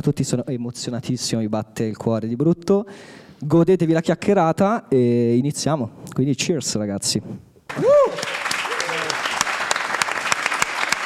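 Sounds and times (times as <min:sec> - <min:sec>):
speech: 0:00.0 - 0:08.0
whoop: 0:07.7 - 0:09.2
faint cheering: 0:07.7 - 0:09.4
crowd applause: 0:07.7 - 0:11.0.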